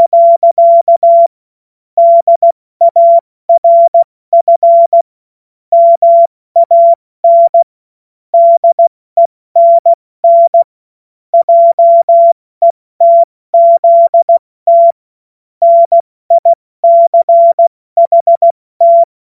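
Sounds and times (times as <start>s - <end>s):
CW Morse code beeps: 0.0s - 1.3s, 2.0s - 5.0s, 5.7s - 7.7s, 8.4s - 10.7s, 11.4s - 12.4s, 13.0s - 15.0s, 15.6s - 19.1s.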